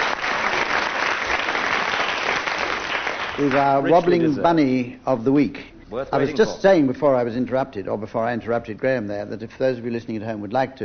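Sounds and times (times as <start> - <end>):
audience applause: 0.0 - 3.9
speech: 3.4 - 10.8.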